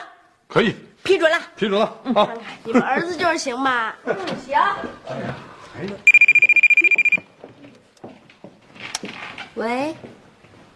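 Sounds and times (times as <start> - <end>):
speech: 0.5 - 6.2, 9.6 - 10.2
telephone ringing: 6.1 - 7.3.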